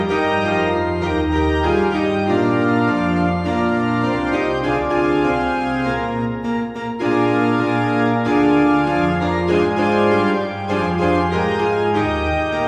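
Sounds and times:
piano backing music for churches: 0:00.0 - 0:12.6.

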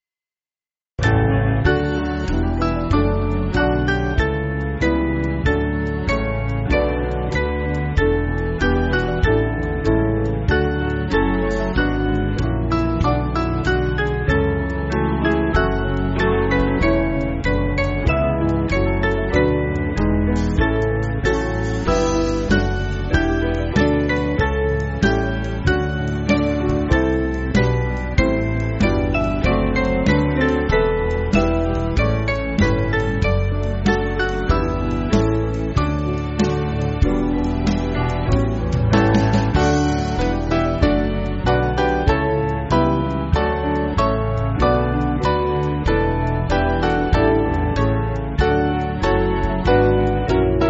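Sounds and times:
band backing track for churches: 0:01.0 - 0:50.6.

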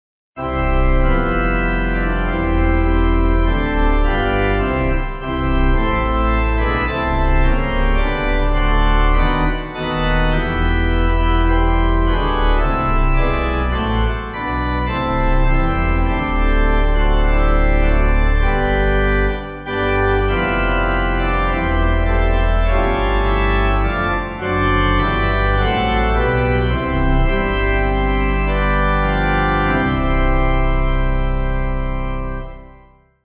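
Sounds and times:
pipe organ: 0:00.4 - 0:33.2.

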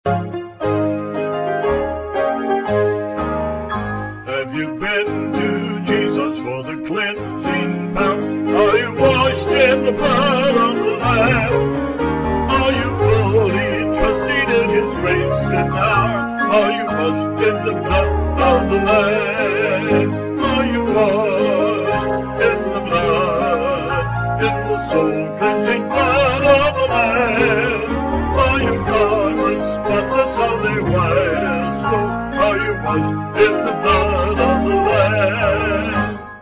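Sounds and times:
piano: 0:00.0 - 0:36.3
vocals: 0:04.2 - 0:36.3.

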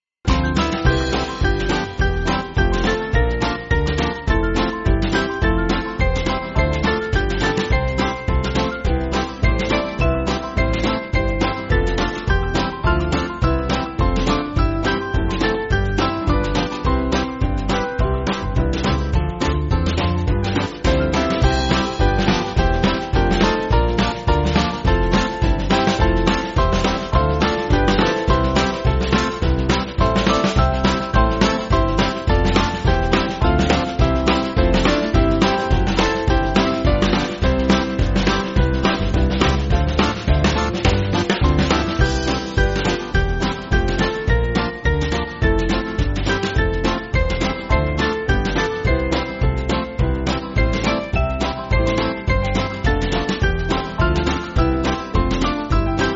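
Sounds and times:
band playing: 0:00.3 - 0:56.1.

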